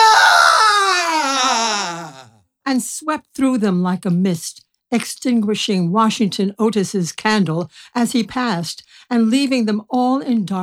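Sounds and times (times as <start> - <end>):
ghost's wild shriek of rage: 0.0 - 2.4
speech: 2.7 - 10.6.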